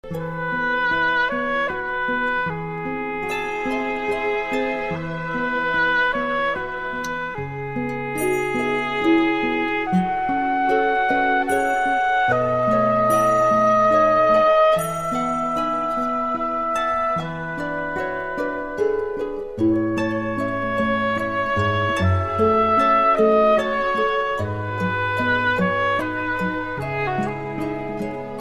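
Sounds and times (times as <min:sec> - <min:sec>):
oboe: 0:00.0 - 0:28.4.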